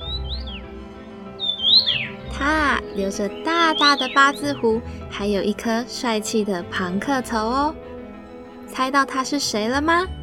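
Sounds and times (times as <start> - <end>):
Taiwan yuhina calls: 0.0 - 5.0
speech: 2.4 - 7.8, 8.7 - 10.2.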